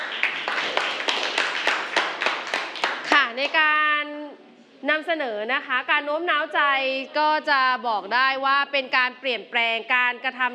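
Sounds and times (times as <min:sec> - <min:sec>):
audience clapping: 0:00.0 - 0:03.6
speech: 0:03.4 - 0:03.9, 0:04.8 - 0:10.5.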